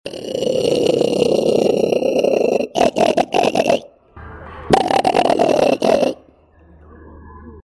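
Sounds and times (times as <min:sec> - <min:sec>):
harbour seal Phoca vitulina calling: 0:00.6 - 0:03.9, 0:04.7 - 0:06.3.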